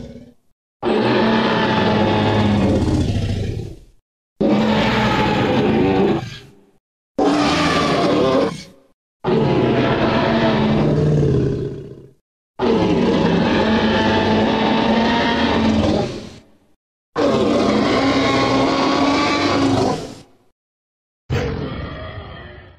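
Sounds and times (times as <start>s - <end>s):
Tyrannosaurus rex sound effect: 0.0s - 6.6s, 7.2s - 16.5s, 17.2s - 20.3s, 21.3s - 22.7s.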